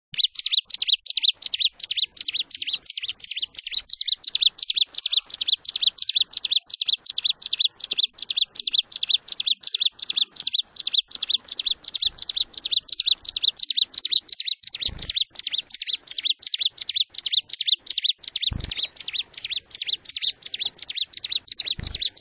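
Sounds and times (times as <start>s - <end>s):
bird song of quick high chirps falling in pitch: 0.0s - 22.2s.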